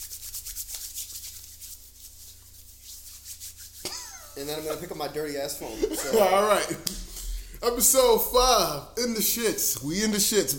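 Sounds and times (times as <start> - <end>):
hands rubbing with hand sanitizer: 0.0 - 6.2
laughter: 3.9 - 6.9
speech: 4.4 - 10.5.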